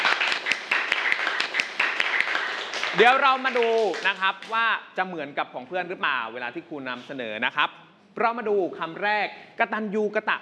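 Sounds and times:
classroom clapping: 0.0 - 4.6
speech: 3.0 - 10.4.

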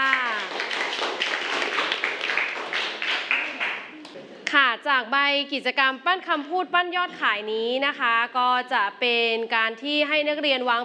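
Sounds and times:
audience clapping: 0.0 - 4.2
speech: 4.9 - 10.8.

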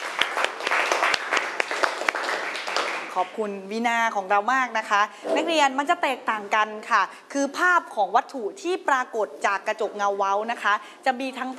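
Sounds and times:
students applauding: 0.0 - 3.3
speech: 3.2 - 11.5.

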